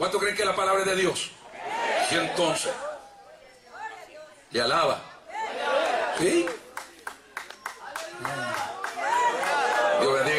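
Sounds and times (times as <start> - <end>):
speech: 0.0 - 1.4, 2.1 - 2.9, 4.5 - 5.1, 6.2 - 6.6
people clapping: 5.7 - 10.3.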